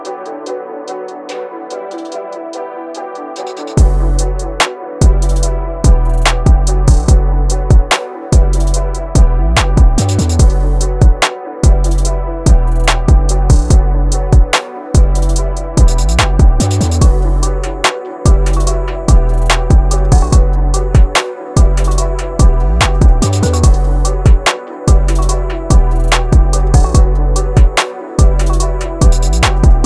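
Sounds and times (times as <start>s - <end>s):
purple trap sample pack: 0.0s - 29.8s.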